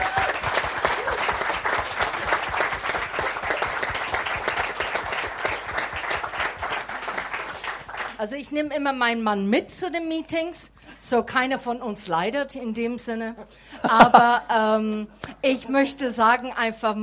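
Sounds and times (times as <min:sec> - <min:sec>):
audience applause: 0:00.0 - 0:08.2
speech: 0:08.2 - 0:17.0.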